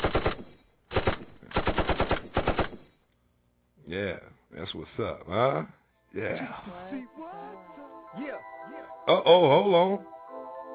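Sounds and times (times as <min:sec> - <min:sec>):
gunshots: 0:00.0 - 0:02.9
speech: 0:03.9 - 0:10.2.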